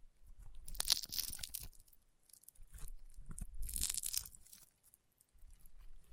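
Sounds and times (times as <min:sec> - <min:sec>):
crunchy popping slime squeezed and pressed: 0:00.7 - 0:01.8, 0:03.6 - 0:04.6.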